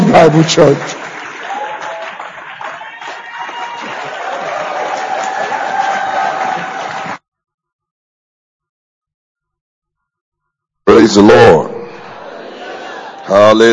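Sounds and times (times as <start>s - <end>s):
audience applause: 0.0s - 7.2s, 12.2s - 13.6s
speech: 0.2s - 1.0s, 11.0s - 11.8s, 13.3s - 13.7s
laughter: 11.9s - 13.7s.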